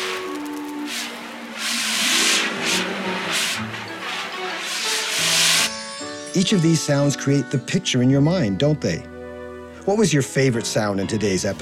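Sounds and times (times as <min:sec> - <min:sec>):
fire extinguisher spraying: 0:00.0 - 0:05.8
speech: 0:06.4 - 0:09.1, 0:09.8 - 0:11.6.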